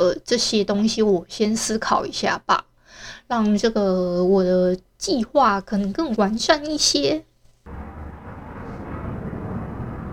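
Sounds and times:
speech: 0:00.0 - 0:07.3
fighter jet flying over with a broad roar: 0:07.7 - 0:10.1.

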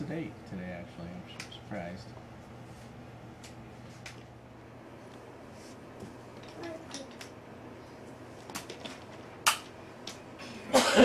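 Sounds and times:
faint steady hum: 0:00.0 - 0:11.0
speech: 0:00.1 - 0:02.3
man sneezing and coughing: 0:10.4 - 0:11.0.

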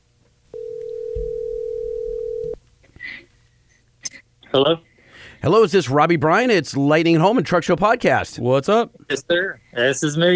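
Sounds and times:
telephone dial tone: 0:00.6 - 0:02.6
speech: 0:04.5 - 0:10.3.

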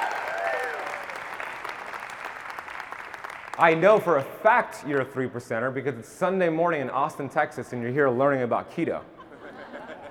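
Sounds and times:
whoop or cheer: 0:00.0 - 0:01.3
room full of people applauding: 0:00.0 - 0:05.1
speech: 0:03.6 - 0:09.1
laughter: 0:09.1 - 0:10.0.

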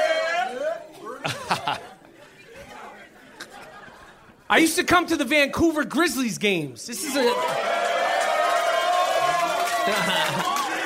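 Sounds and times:
crowd cheering: 0:00.0 - 0:02.0, 0:06.9 - 0:10.8
laughter: 0:00.9 - 0:04.7, 0:09.5 - 0:10.8
speech: 0:01.2 - 0:01.9, 0:04.5 - 0:07.7, 0:09.8 - 0:10.6.

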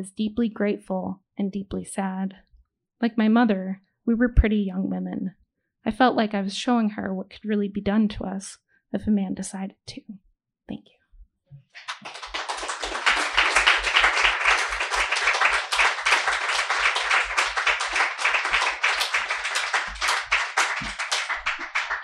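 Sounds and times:
speech: 0:00.0 - 0:12.2
audience applause: 0:11.8 - 0:22.0.

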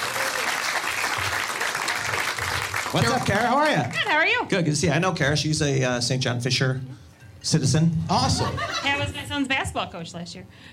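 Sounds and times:
audience round of applause: 0:00.0 - 0:04.0
speech: 0:02.9 - 0:10.7
laughter: 0:08.1 - 0:09.3.

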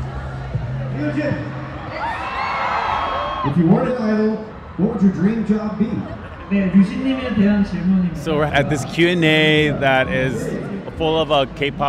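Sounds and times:
speech: 0:01.0 - 0:01.6, 0:03.4 - 0:11.8
crowd of fans screaming: 0:01.2 - 0:07.5.

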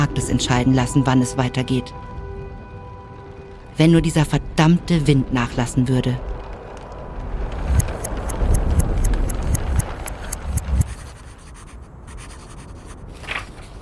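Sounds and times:
speech: 0:00.0 - 0:02.2, 0:03.8 - 0:06.3
pen scratching on paper writing in a diary: 0:07.8 - 0:13.0.

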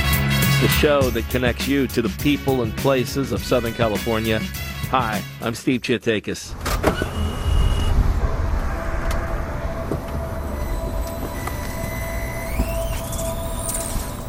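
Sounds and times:
speech: 0:00.6 - 0:07.0
electric car driving: 0:06.5 - 0:14.2.

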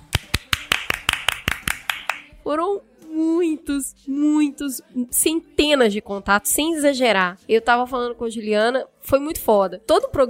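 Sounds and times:
hands clapping: 0:00.0 - 0:02.3
speech: 0:02.5 - 0:10.2.

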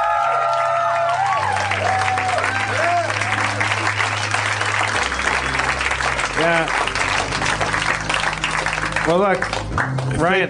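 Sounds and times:
whoops and cheers: 0:00.0 - 0:03.9
audience applause for a tabletop role-playing game dungeon master: 0:00.0 - 0:10.4
speech: 0:09.1 - 0:10.4.

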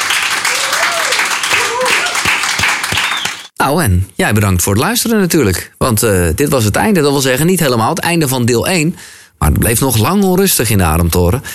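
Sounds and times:
audience applause: 0:00.0 - 0:03.5
voices and rising whoops: 0:00.4 - 0:03.4
speech: 0:03.6 - 0:11.5.

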